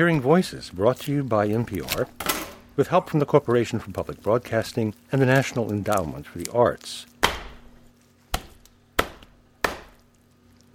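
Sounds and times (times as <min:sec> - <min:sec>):
speech: 0:00.0 - 0:07.1
chopping a turkey: 0:07.2 - 0:10.1.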